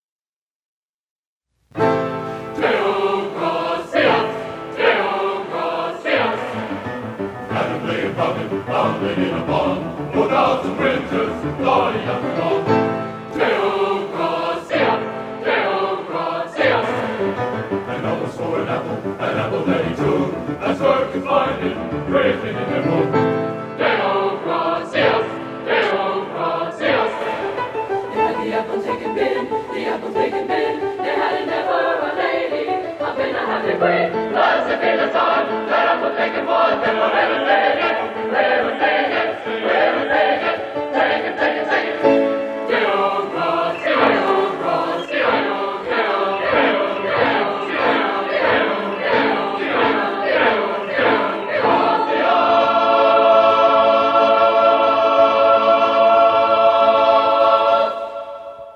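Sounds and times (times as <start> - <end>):
choir singing: 1.8 - 58.7.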